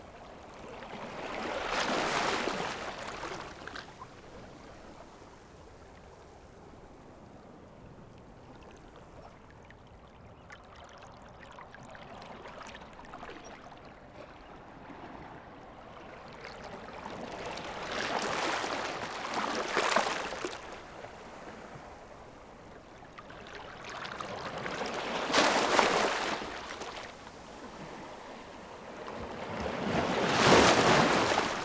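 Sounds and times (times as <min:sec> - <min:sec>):
waves on a seashore: 0:00.0 - 0:06.0, 0:14.6 - 0:31.6.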